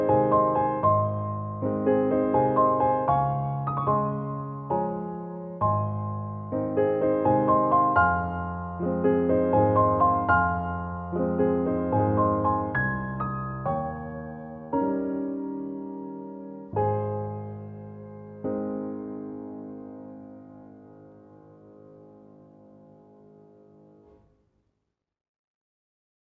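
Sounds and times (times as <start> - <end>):
classical piano waltz: 0.0 - 24.2.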